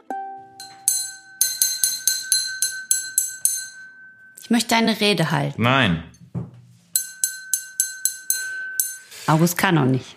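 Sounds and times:
glasses clinking in a toast: 0:00.5 - 0:05.0, 0:06.9 - 0:09.5
speech: 0:04.5 - 0:06.1, 0:09.3 - 0:10.1.

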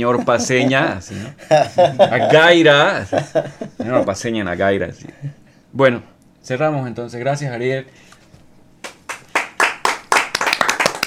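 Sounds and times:
laughter: 0:00.0 - 0:04.3
speech: 0:00.0 - 0:08.1
small group applauding with crisp hand claps: 0:08.8 - 0:11.0.

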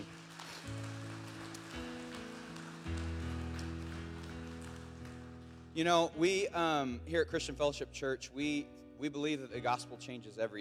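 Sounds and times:
crowd applause: 0:00.0 - 0:05.7
speech: 0:05.8 - 0:10.6.

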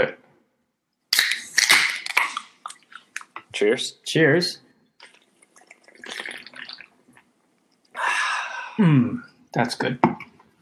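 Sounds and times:
speech: 0:00.0 - 0:00.2, 0:03.6 - 0:04.6, 0:08.8 - 0:10.3
soda can cracking open: 0:01.1 - 0:02.5.

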